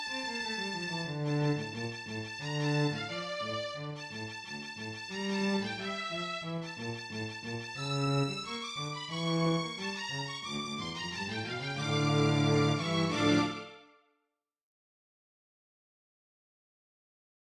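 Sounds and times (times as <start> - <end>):
tango music: 0.0 - 13.8.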